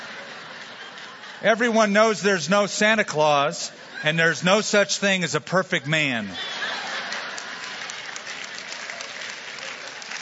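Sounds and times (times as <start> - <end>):
laughter: 0.0 - 10.2
speech: 1.4 - 6.6
women clapping: 7.0 - 10.2.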